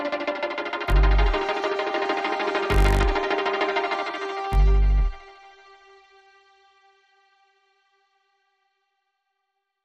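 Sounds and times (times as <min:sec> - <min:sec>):
music without drums: 0:00.0 - 0:06.8.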